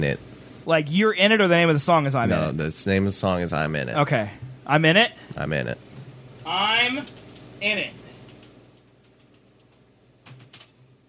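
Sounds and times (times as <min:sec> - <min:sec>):
speech: 0:00.0 - 0:08.0
low steady hum: 0:00.0 - 0:11.0
computer keyboard typing a six-letter word: 0:08.2 - 0:10.9.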